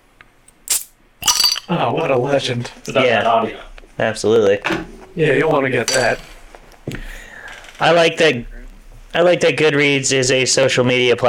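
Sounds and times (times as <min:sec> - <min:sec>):
beer can being cracked open: 0:00.6 - 0:01.7
speech: 0:01.7 - 0:06.3, 0:07.8 - 0:08.5, 0:09.1 - 0:11.2.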